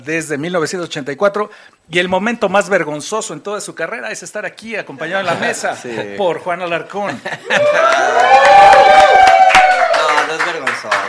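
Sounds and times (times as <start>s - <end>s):
speech: 0.0s - 9.3s, 10.3s - 11.0s
laughter: 7.0s - 8.3s
crowd cheering and ovation for a cartoonist at a panel table: 7.4s - 10.2s.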